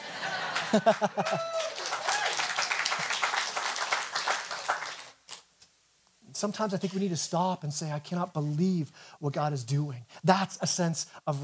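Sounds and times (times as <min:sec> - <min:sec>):
laughter: 0:00.0 - 0:01.8
person clapping: 0:00.6 - 0:05.2
speech: 0:00.7 - 0:01.8, 0:06.4 - 0:11.4.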